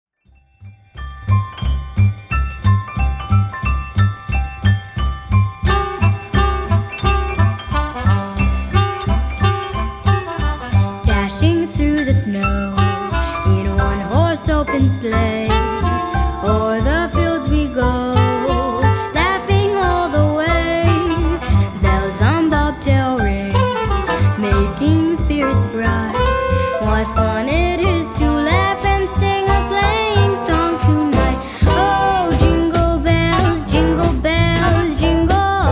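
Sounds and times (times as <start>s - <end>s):
Christmas song: 0.6s - 35.7s.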